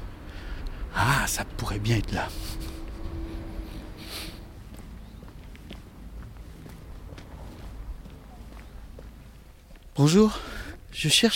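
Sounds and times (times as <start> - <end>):
speech: 1.0 - 2.7, 10.0 - 11.3
quick light footsteps of someone walking briskly: 4.6 - 10.0.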